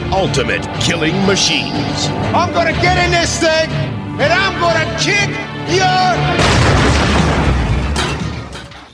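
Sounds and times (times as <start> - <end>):
speech: 0.2 - 7.4
movie-trailer explosion: 6.4 - 8.2
crackling debris: 6.4 - 8.9.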